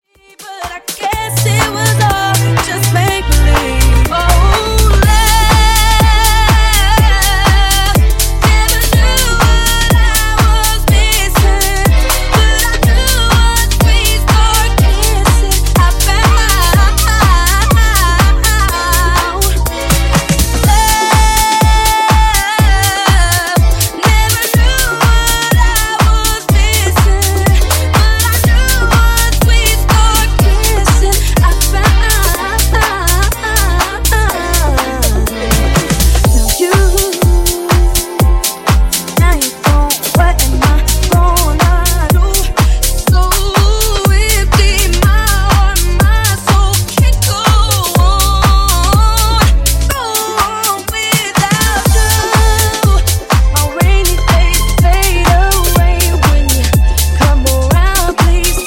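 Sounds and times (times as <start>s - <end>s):
love funk nu-disco music: 0.0s - 58.6s.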